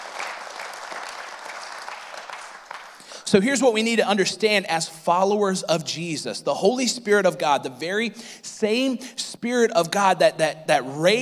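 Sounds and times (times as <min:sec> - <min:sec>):
crowd clapping in praise: 0:00.0 - 0:03.3
speech: 0:03.3 - 0:11.2.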